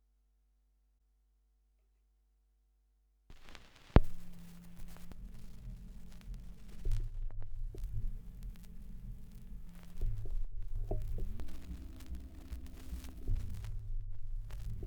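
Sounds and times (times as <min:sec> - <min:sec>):
78 rpm gramophone record surface noise: 0:03.3 - 0:14.8.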